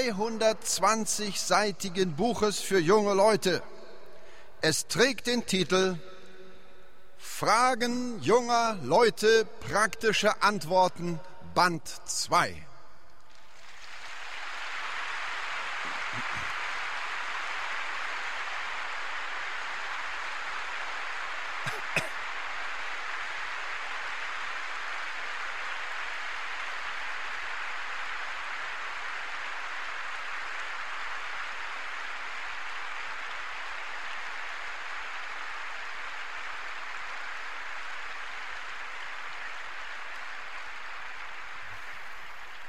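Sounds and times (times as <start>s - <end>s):
speech: 0.0s - 3.8s, 4.6s - 6.1s, 7.2s - 12.7s
audience applause: 13.4s - 42.6s.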